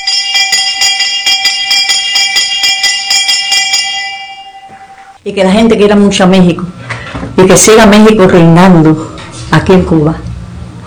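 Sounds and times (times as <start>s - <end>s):
ceremonial bells ringing: 0.0s - 5.2s
speech: 5.2s - 6.8s, 7.4s - 10.2s.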